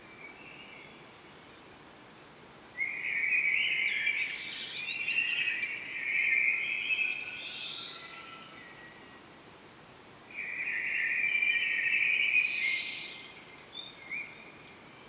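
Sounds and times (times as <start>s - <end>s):
common blackbird singing: 2.8s - 9.0s, 10.4s - 15.0s.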